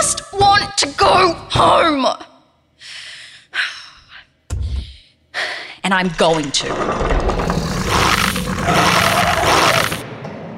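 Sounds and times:
speech: 0.0s - 2.3s, 5.9s - 7.4s
dog growling outside a door: 7.4s - 10.0s.

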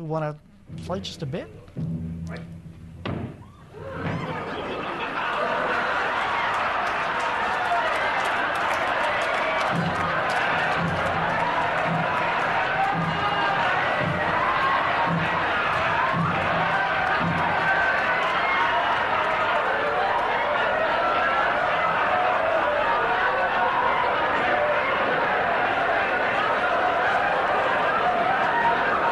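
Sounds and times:
speech: 0.0s - 2.6s
thump: 3.0s - 3.4s
television studio audience laughing and cheering: 3.4s - 29.1s.

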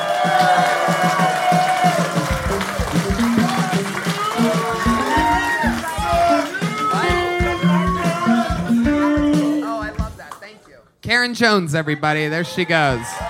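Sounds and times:
studio audience applauding: 0.0s - 8.7s
studio audience cheering with whoops and shouts: 0.0s - 9.3s, 12.4s - 13.2s
speech: 11.3s - 13.2s.

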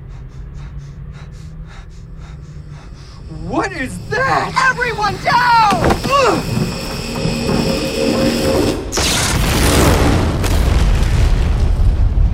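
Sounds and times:
tense tonal drone: 0.0s - 9.3s
speech: 3.4s - 6.6s
massive explosion destroying a colony's command tower: 5.8s - 12.3s.

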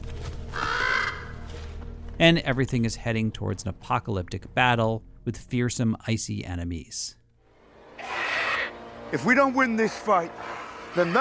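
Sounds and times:
raven cawing: 0.5s - 1.7s, 7.9s - 9.0s, 10.3s - 11.1s
speech: 2.2s - 7.2s, 9.1s - 11.1s.

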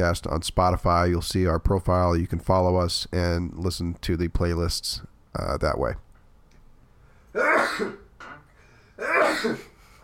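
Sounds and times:
speech: 0.0s - 6.0s, 7.4s - 8.0s, 9.4s - 9.6s
sneezes: 7.4s - 8.1s, 9.0s - 9.8s.

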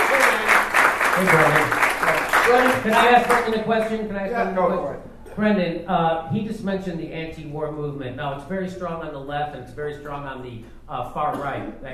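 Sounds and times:
crowd applauding: 0.0s - 4.0s
speech: 1.2s - 1.7s, 2.5s - 11.9s.

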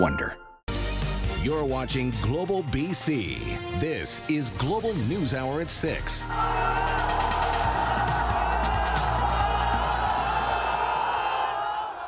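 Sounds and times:
speech: 0.0s - 0.4s, 1.4s - 7.4s
crowd cheering and chanting: 6.2s - 12.0s.

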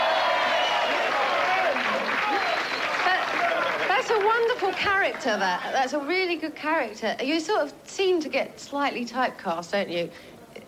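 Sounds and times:
voices and whoops: 0.0s - 3.9s
audience clapping: 0.0s - 5.7s
speech: 4.3s - 10.3s.

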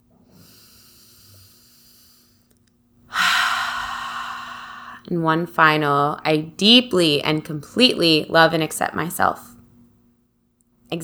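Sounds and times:
slow deep breath in a guided emotional-release exercise: 0.3s - 2.5s, 3.1s - 5.1s
speech: 5.0s - 9.6s.

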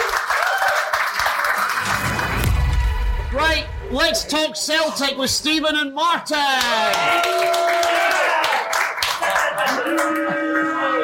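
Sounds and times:
round of applause: 0.0s - 2.7s, 6.6s - 11.0s
speech: 3.4s - 8.0s.

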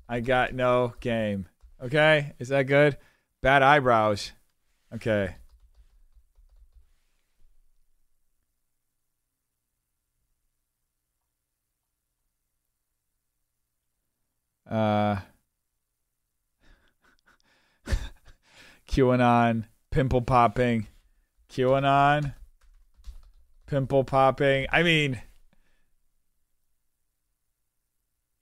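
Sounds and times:
speech: 0.1s - 5.4s, 14.7s - 15.3s, 18.9s - 20.9s, 21.5s - 22.4s, 23.7s - 25.3s
typing on a computer keyboard: 5.4s - 6.9s, 21.6s - 23.7s.

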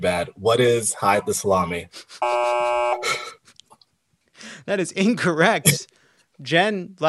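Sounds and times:
speech: 0.0s - 3.2s, 4.7s - 7.0s
game show buzzer: 2.2s - 3.1s.

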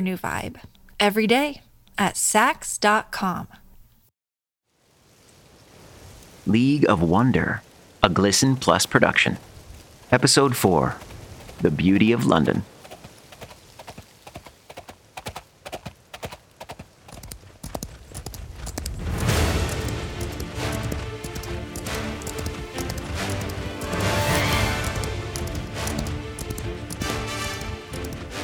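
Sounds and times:
speech: 0.0s - 3.6s, 6.4s - 9.5s, 10.1s - 12.7s
horse galloping hooves: 9.4s - 28.4s.

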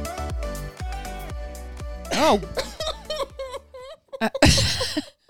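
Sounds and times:
person burping sneezing and coughing at once: 2.1s - 3.0s, 4.4s - 5.1s
speech: 2.3s - 2.7s.

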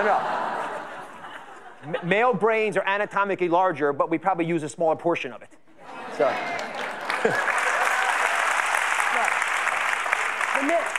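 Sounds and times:
speech: 0.0s - 0.3s, 1.8s - 7.6s
laughter: 0.0s - 2.4s, 5.8s - 8.2s
audience clapping: 6.2s - 10.9s.

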